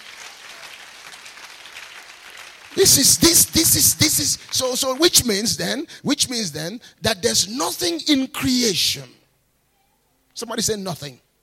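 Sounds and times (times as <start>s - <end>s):
audience clapping hands: 0.0s - 5.4s
speech: 2.8s - 9.2s, 10.4s - 11.2s.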